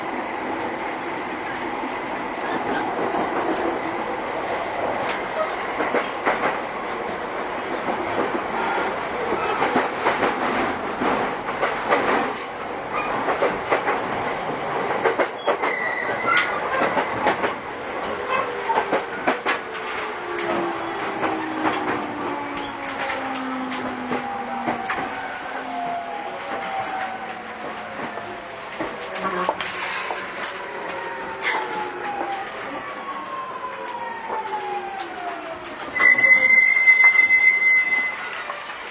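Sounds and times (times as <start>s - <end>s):
JR 209-series commuter train running: 0.0s - 38.8s
train braking: 8.1s - 9.9s, 15.4s - 17.1s, 18.2s - 32.4s, 34.2s - 38.8s.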